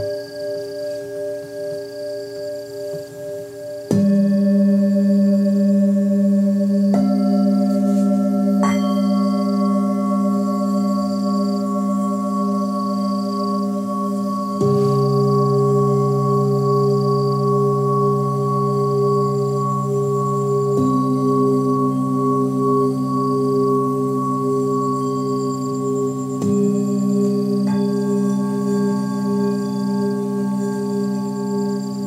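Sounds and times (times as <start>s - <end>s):
Tibetan singing bowls struck and ringing: 0.0s - 32.0s.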